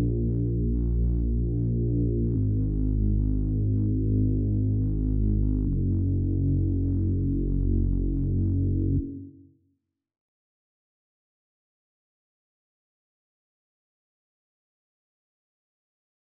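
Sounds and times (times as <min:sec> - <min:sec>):
bass: 0:00.0 - 0:09.5.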